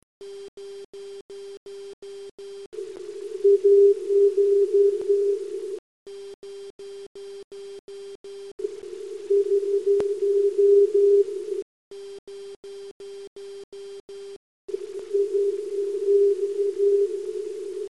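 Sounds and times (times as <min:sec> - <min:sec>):
25 Hz filter test tone: 0:02.8 - 0:05.8, 0:08.7 - 0:11.6, 0:14.7 - 0:17.9.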